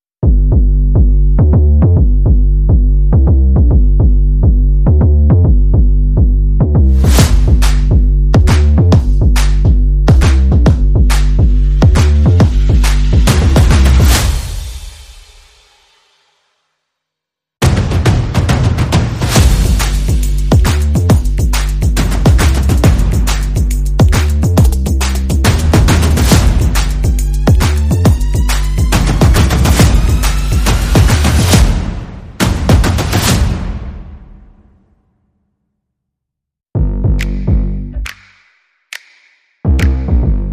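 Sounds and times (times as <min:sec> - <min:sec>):
bass: 0:00.2 - 0:14.6, 0:19.2 - 0:33.5, 0:36.7 - 0:38.4, 0:39.0 - 0:40.5
percussion: 0:00.2 - 0:16.1, 0:17.6 - 0:34.6, 0:36.8 - 0:40.5.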